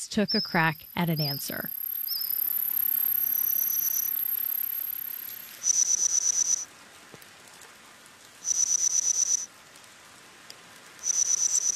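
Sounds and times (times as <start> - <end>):
speech: 0.0 - 1.8
reconstructed chirps of ancient Jurassic insects: 0.4 - 6.7, 8.4 - 9.5, 11.0 - 11.7.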